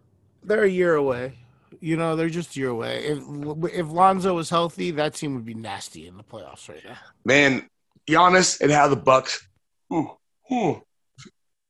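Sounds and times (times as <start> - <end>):
speech: 0.4 - 11.3
person yawning: 9.9 - 10.9.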